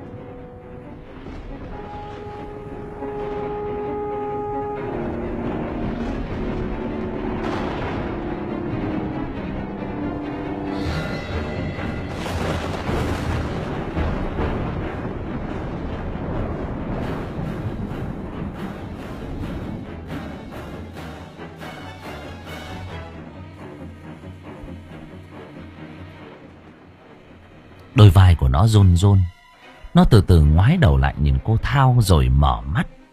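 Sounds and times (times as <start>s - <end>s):
thunder clap sound effect: 0.0s - 21.1s
speech: 28.6s - 29.3s, 30.0s - 33.0s.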